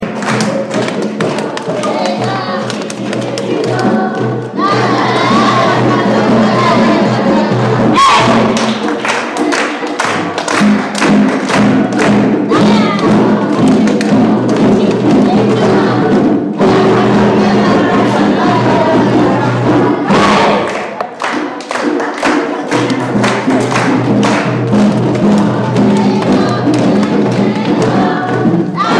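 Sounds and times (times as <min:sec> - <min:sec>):
school choir singing: 0:00.1 - 0:11.1, 0:12.0 - 0:28.9.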